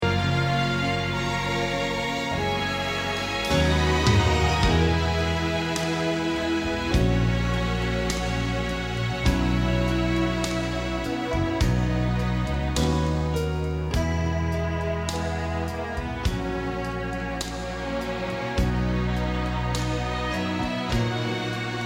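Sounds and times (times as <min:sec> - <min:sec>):
bass: 0:00.0 - 0:21.8.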